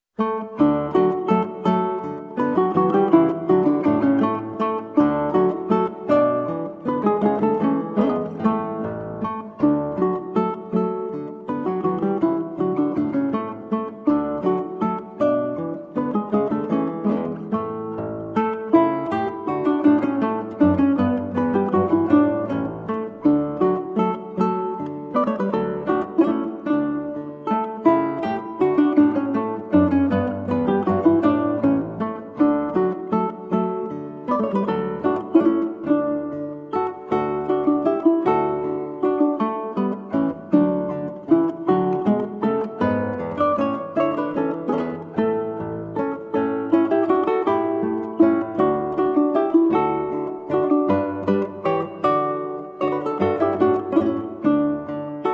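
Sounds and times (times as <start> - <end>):
guitar playing a menuetto: 0.0 - 55.3
ukulele playing a menuetto: 0.0 - 55.3.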